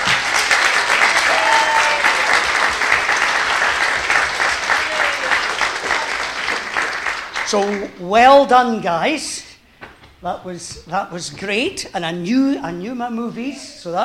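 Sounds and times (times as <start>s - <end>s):
audience applause: 0.0s - 7.9s
speech: 7.5s - 9.4s, 10.2s - 14.0s.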